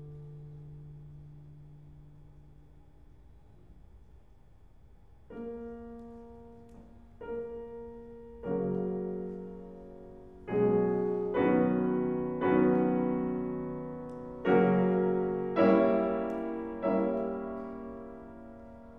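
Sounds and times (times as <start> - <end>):
clarinet and piano sonata in B-flat: 5.3 - 18.9.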